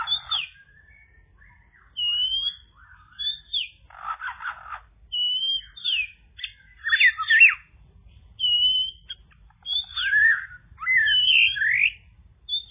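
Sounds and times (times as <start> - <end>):
Java sparrow song with clicks chirps and sliding notes: 0.0 - 12.7.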